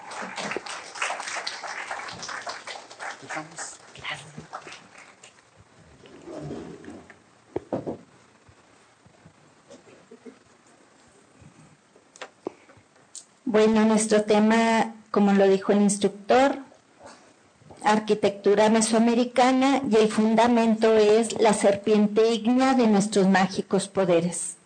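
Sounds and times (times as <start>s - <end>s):
audience applause: 0.0s - 5.5s
speech: 3.4s - 4.4s, 13.5s - 16.5s, 18.0s - 24.6s.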